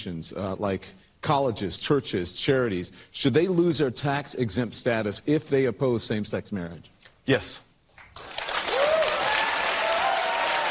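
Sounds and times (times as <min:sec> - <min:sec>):
speech: 0:00.0 - 0:07.6
crowd applause: 0:08.2 - 0:10.6.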